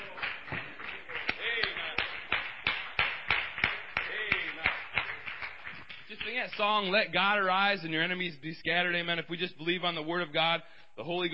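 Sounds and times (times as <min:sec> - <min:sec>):
church congregation clapping hands rhythmically: 0:00.0 - 0:07.5
speech: 0:06.4 - 0:11.3.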